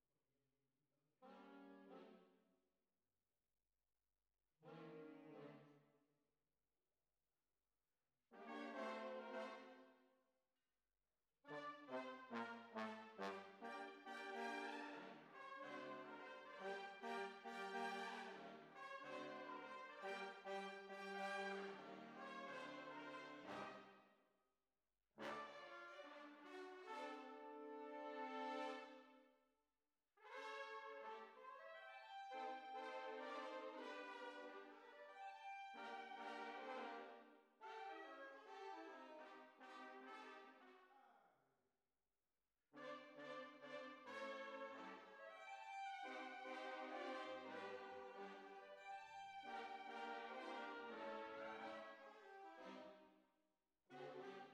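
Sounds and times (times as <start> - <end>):
tuba: 1.4 - 2.3, 4.7 - 5.9, 8.4 - 9.9, 11.5 - 23.9, 25.2 - 29.2, 30.2 - 41.2, 42.8 - 53.1, 53.9 - 54.5.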